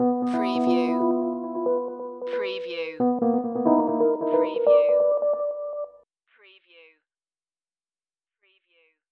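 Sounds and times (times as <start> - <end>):
dark hip hop Rhodes electric piano licks with swing: 0.0 - 6.0.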